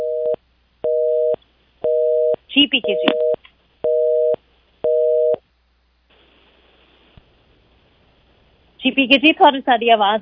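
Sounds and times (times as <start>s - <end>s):
telephone busy tone after a phone line disconnects: 0.0s - 5.4s
speech: 2.6s - 3.3s, 9.0s - 10.2s.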